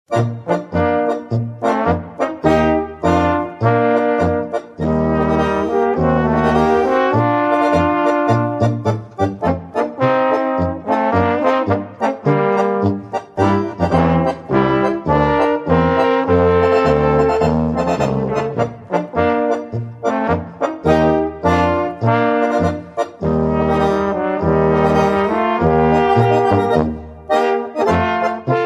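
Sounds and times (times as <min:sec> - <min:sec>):
polka music: 0:00.0 - 0:28.6.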